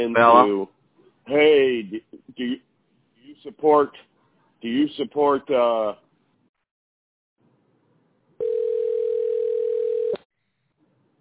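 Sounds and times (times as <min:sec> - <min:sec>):
speech: 0:00.0 - 0:02.7, 0:03.4 - 0:06.0
landline telephone ringing for an incoming call: 0:08.4 - 0:10.2.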